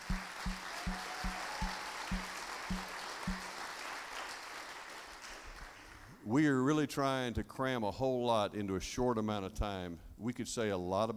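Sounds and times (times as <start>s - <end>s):
audience applause: 0.0s - 6.1s
speech: 6.3s - 11.1s.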